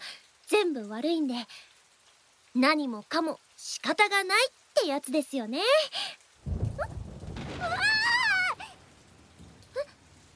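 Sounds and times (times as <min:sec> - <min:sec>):
steady rain: 0:00.0 - 0:10.3
speech: 0:00.6 - 0:01.7, 0:02.6 - 0:06.2
thunder rumbling: 0:06.4 - 0:10.3.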